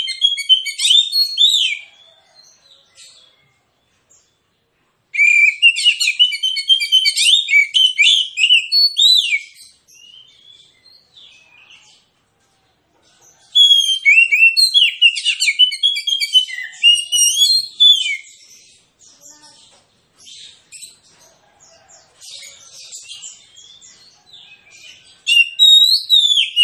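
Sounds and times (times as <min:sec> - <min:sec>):
magpie-robin rapid-fire song: 0:00.0 - 0:01.8, 0:05.2 - 0:11.9, 0:13.4 - 0:19.7, 0:22.4 - 0:26.6.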